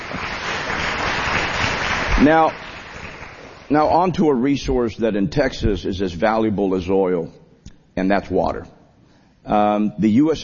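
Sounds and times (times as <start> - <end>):
audience applause: 0.0 - 3.7
speech: 2.2 - 2.6, 3.7 - 7.4, 8.0 - 8.8, 9.4 - 10.4.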